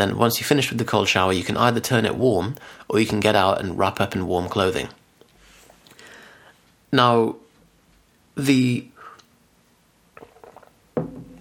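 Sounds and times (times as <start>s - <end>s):
speech: 0.0s - 5.0s, 6.9s - 7.4s, 8.4s - 8.9s
person sipping tea: 10.2s - 10.8s.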